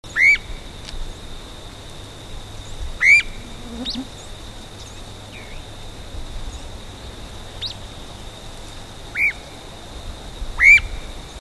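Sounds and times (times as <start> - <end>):
streamer-tailed tyrant calls: 0.1 - 0.5, 3.0 - 5.6, 10.6 - 11.0.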